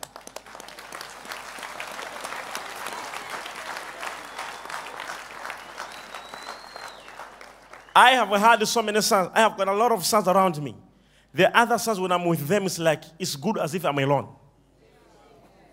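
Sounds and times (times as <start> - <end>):
audience clapping hands: 0.0 - 8.6
speech: 8.0 - 14.4.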